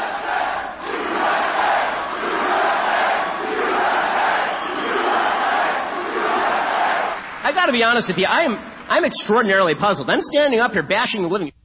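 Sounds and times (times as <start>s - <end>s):
protesting crowd shouting at a comedian: 0.0s - 7.5s
speech: 7.6s - 11.6s.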